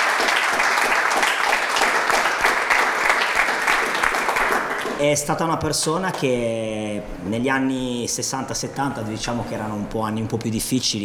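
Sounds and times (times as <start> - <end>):
audience applause: 0.0 - 5.0
speech: 5.0 - 11.0.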